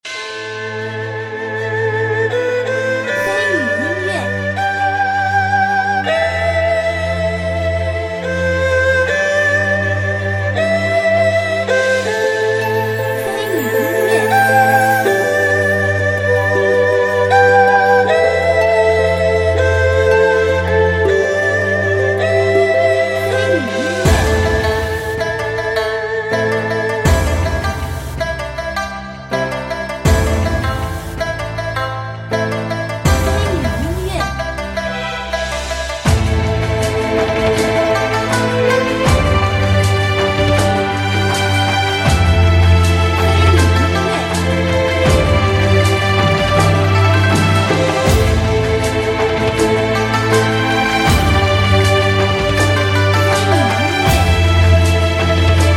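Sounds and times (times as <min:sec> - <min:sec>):
sad hopeful ancient Chinese-style music: 0:00.0 - 0:55.7.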